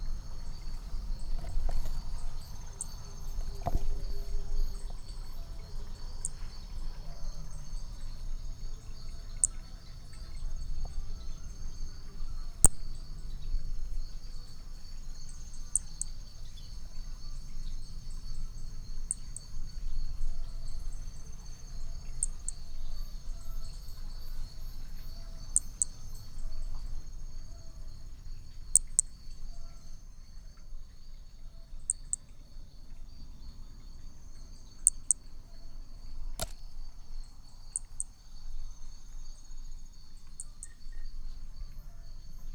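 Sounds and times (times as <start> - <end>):
steady insect drone: 0.0 - 42.5
toadlet clicks: 36.4 - 36.7.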